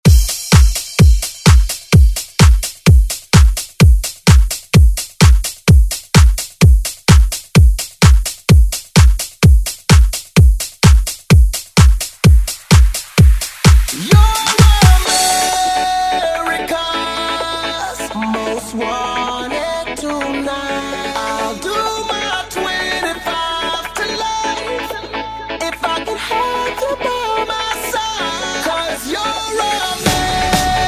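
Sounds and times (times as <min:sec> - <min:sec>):
dance music: 0:00.0 - 0:30.8.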